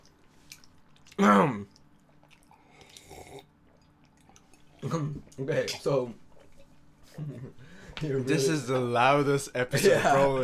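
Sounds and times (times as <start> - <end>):
wet chewing of food: 0.0 - 7.4
speech: 1.2 - 1.7, 4.8 - 6.2, 7.2 - 10.4.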